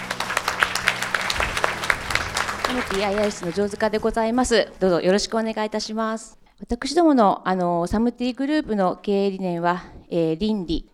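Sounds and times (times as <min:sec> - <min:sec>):
audience applause at an investor presentation: 0:00.0 - 0:04.0
speech: 0:02.7 - 0:10.9.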